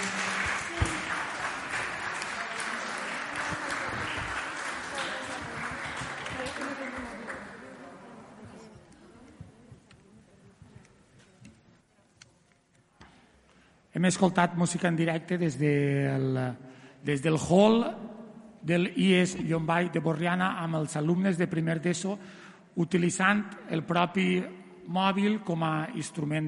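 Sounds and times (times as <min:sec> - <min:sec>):
crowd applause: 0:00.0 - 0:08.4
speech: 0:14.0 - 0:18.0, 0:18.6 - 0:26.4.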